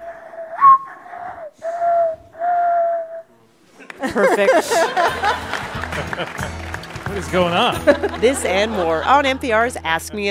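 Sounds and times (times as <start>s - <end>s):
person whistling bird-call imitations: 0.6s - 3.3s
laughter: 3.7s - 9.8s
speech: 4.1s - 10.2s.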